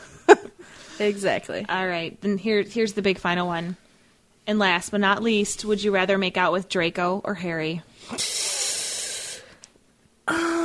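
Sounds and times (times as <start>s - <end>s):
speech: 1.0s - 3.8s, 4.5s - 8.3s
deep hiss through teeth: 8.0s - 9.7s.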